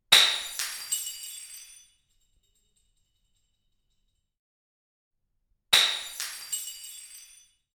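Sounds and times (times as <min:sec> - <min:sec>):
glass shattering: 0:00.1 - 0:03.6, 0:05.8 - 0:07.6.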